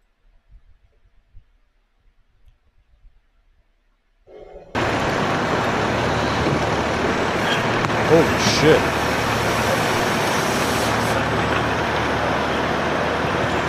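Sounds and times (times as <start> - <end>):
four-alarm fire scene with vehicles: 4.8 - 13.6
speech: 8.1 - 9.0.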